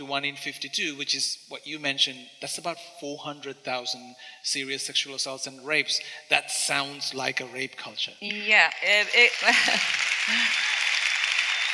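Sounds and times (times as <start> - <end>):
speech: 0.0 - 10.7
audience applause: 8.8 - 11.7.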